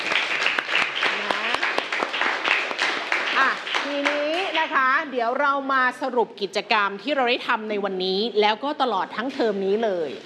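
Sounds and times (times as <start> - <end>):
students clapping for themselves: 0.0 - 4.9
speech: 3.4 - 10.2.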